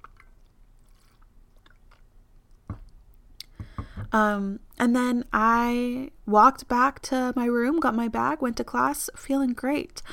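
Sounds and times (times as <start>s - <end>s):
person sipping water: 0.0s - 2.6s
speech: 4.1s - 10.1s.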